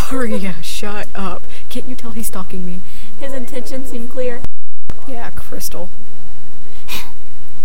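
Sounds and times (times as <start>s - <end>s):
speech: 0.1s - 7.1s
creepy heavy breathing over the phone: 2.8s - 3.2s.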